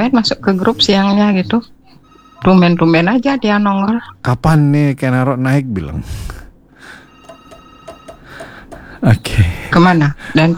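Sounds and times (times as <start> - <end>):
speech: 0.0 - 1.8, 2.4 - 6.4, 9.0 - 10.5
low hum: 0.0 - 10.5
telephone ringing with short bright electronic tones: 0.4 - 3.7, 6.9 - 10.2.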